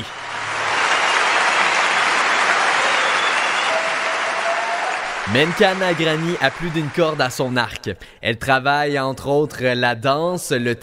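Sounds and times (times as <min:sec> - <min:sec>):
crowd applauding warmly to welcome an artist: 0:00.0 - 0:07.8
speech: 0:05.3 - 0:10.8.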